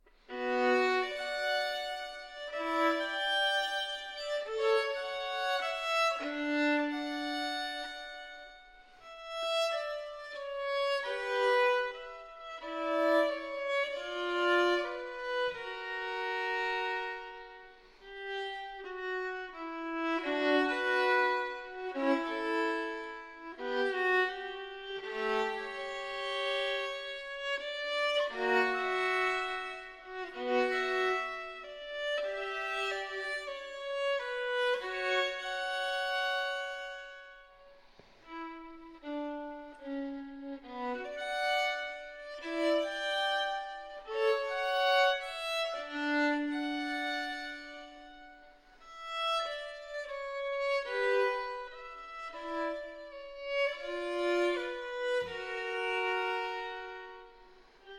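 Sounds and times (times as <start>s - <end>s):
solo violin sarabande: 0.0s - 57.9s.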